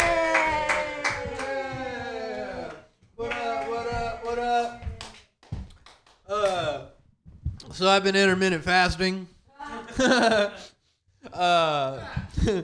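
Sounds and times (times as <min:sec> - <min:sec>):
audience applause for a comedian at a comedy show: 0:00.0 - 0:05.2
speech: 0:07.8 - 0:09.4, 0:10.0 - 0:10.7, 0:11.4 - 0:12.6
laughter: 0:09.6 - 0:10.7.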